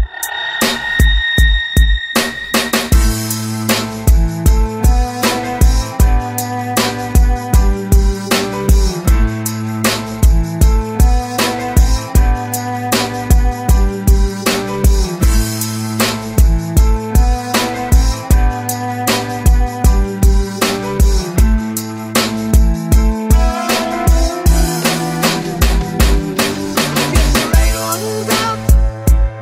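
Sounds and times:
rock music: 0.1s - 29.2s.

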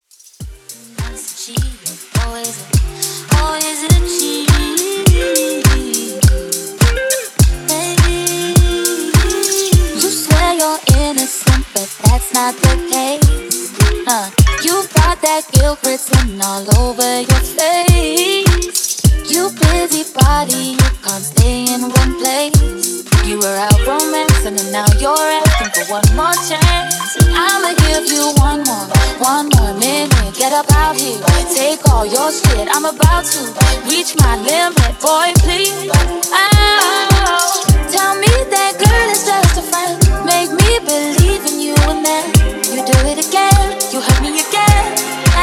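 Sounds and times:
Top 40 club drum loop: 0.2s - 45.4s.

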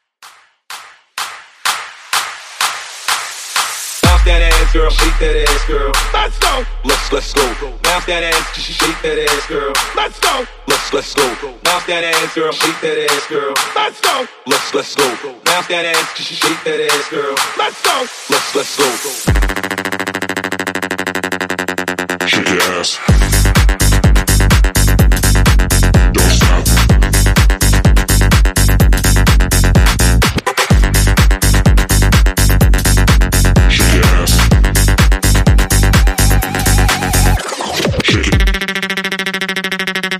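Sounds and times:
tech house music: 0.0s - 40.1s.

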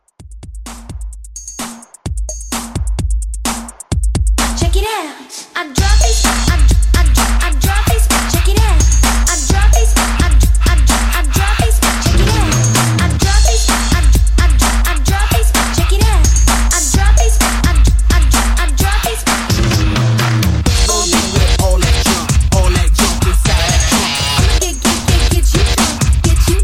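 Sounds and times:
old school mashup drum beat: 0.0s - 4.9s, 5.8s - 26.6s.

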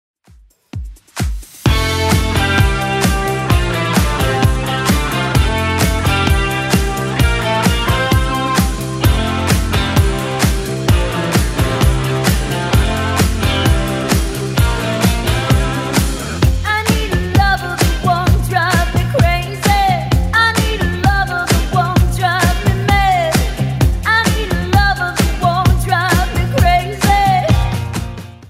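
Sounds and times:
80s club edit dance music at 130 bpm: 0.7s - 28.4s.

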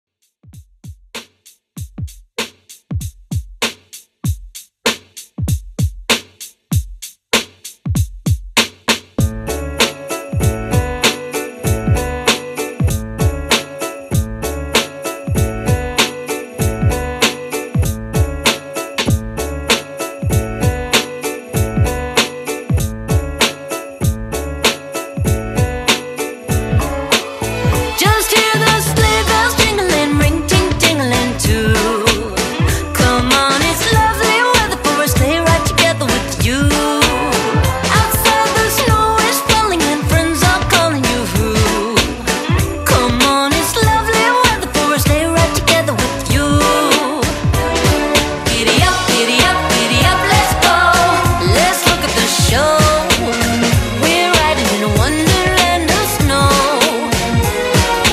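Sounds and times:
Christmas drum beat: 0.2s - 58.1s.

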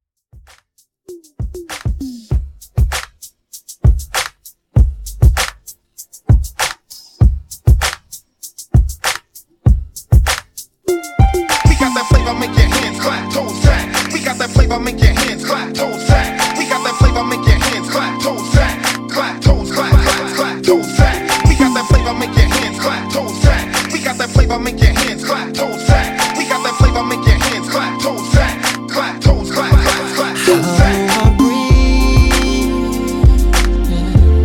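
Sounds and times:
Redrum drum machine beat: 0.3s - 34.4s.

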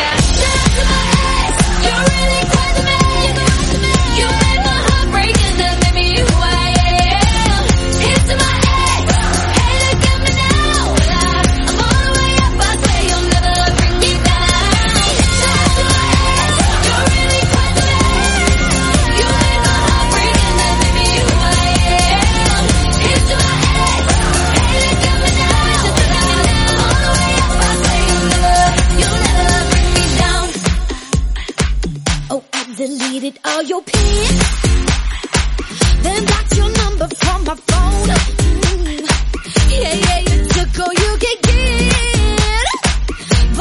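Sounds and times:
128 bpm music loop in F minor: 0.1s - 32.7s, 34.0s - 43.6s.

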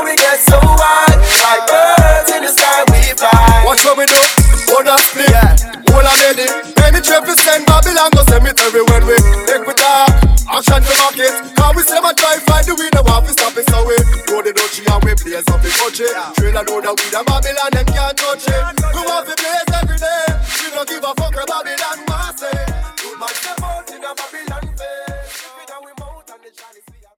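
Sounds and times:
dirty 90s reggae drum break at 100 BPM: 0.0s - 27.1s.

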